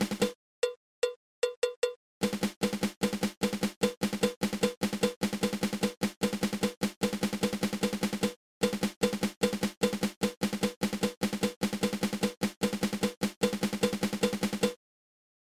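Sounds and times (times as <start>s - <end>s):
drum flam tap: 0.0s - 14.8s.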